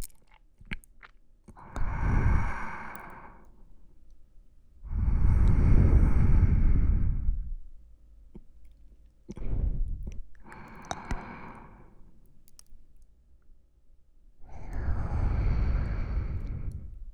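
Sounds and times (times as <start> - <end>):
sleeping breath in both ears: 1.6 - 3.6, 4.9 - 7.6, 9.3 - 12.2, 14.4 - 17.1.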